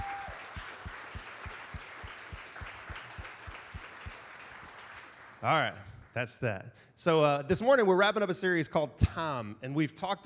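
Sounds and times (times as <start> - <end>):
audience applause: 0.0 - 5.7
speech: 5.4 - 10.2.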